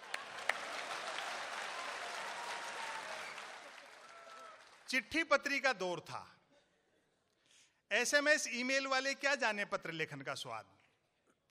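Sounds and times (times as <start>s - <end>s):
audience applause: 0.0s - 5.0s
speech: 4.9s - 6.4s, 7.9s - 10.8s.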